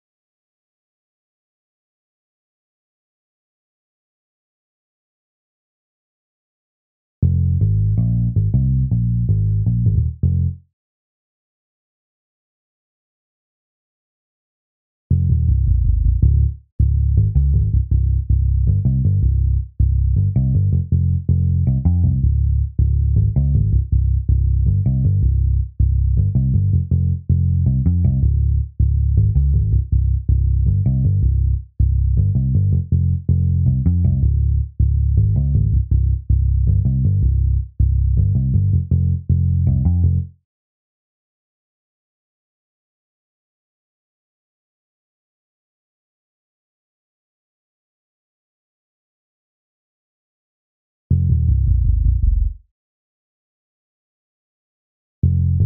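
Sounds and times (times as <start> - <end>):
bass: 7.2 - 10.6, 15.1 - 40.4, 51.1 - 52.7, 55.2 - 55.6.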